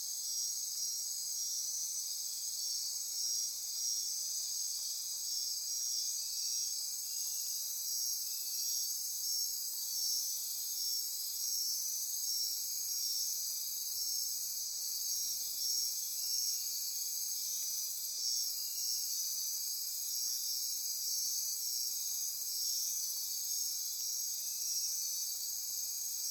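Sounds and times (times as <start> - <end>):
insect chorus: 0.0 - 26.2.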